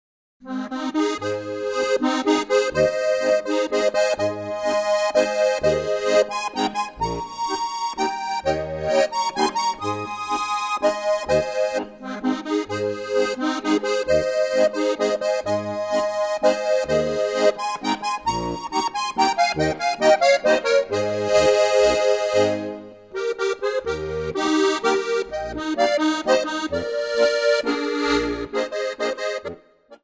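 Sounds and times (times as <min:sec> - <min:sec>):
waltz music: 0:00.5 - 0:29.6.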